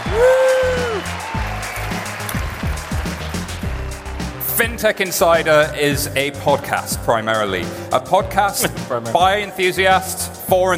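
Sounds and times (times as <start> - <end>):
audience applause: 0.0 - 4.5
speech: 4.6 - 10.7.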